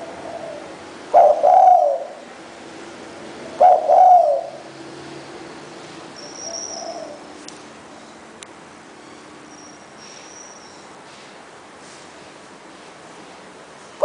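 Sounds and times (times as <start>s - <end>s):
spotted dove cooing: 0.0s - 2.3s, 3.4s - 4.7s, 6.4s - 7.3s.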